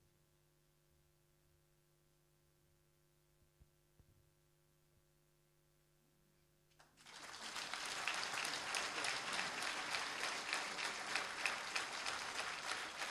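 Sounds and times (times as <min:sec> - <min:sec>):
audience applause: 0:07.0 - 0:13.0.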